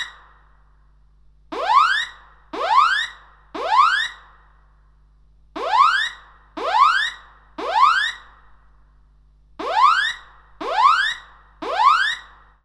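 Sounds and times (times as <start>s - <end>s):
fire alarm: 0.0s - 0.5s, 1.5s - 4.5s, 5.6s - 8.5s, 9.6s - 12.6s.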